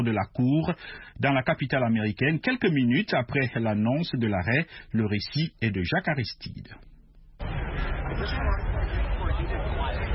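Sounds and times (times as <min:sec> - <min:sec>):
speech: 0:00.0 - 0:06.9, 0:08.2 - 0:09.6
crowd gathered outside the court babbling outdoors: 0:07.4 - 0:10.1.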